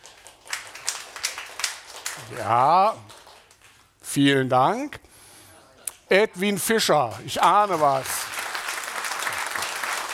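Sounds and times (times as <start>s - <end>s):
audience applause cast as a vote for a recording: 0.0s - 3.6s, 7.4s - 10.1s
speech: 2.2s - 3.2s, 4.2s - 5.1s, 6.1s - 8.2s.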